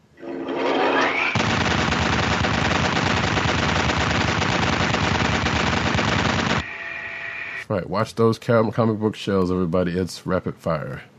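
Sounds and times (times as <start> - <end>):
machine gun sound effect opening a rapid-fire segment: 1.1 - 6.7
speech: 7.7 - 11.1.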